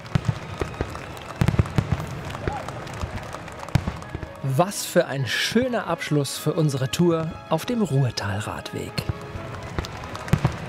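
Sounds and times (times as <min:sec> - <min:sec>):
fireworks: 0:00.0 - 0:04.3, 0:09.1 - 0:10.6
speech: 0:04.4 - 0:09.2.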